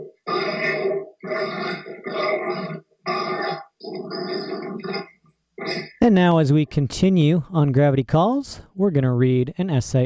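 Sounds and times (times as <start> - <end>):
dogs grunting and snorting: 0.0 - 6.0
speech: 6.1 - 10.0.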